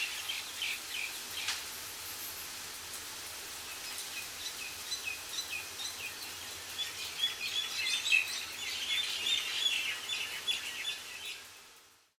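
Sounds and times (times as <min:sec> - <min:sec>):
birds singing in the countryside in Mauritius: 0:00.0 - 0:01.6, 0:03.6 - 0:11.6.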